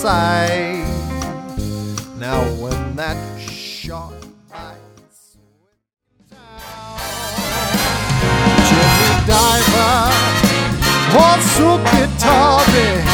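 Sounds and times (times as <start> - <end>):
big band music in Los Angeles: 0.0 - 5.1, 6.4 - 13.1.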